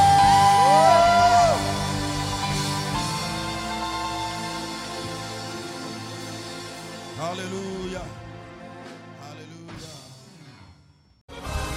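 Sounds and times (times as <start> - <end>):
audience shouting, whooping and clapping: 0.0 - 2.3.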